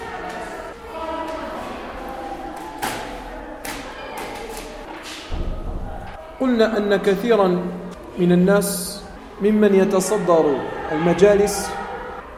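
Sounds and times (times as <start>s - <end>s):
door being shut: 5.3s - 6.3s
speech: 6.4s - 11.8s.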